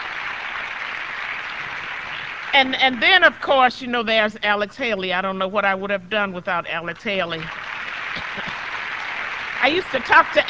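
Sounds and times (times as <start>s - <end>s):
audience applause for a doctor: 0.0s - 3.5s, 7.4s - 10.4s
speech: 2.5s - 7.6s, 8.4s - 8.6s, 9.6s - 10.4s.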